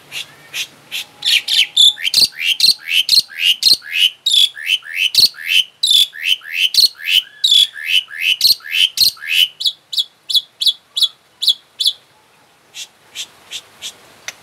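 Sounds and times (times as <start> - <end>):
Asian pied starling chirping: 0.1 - 12.0.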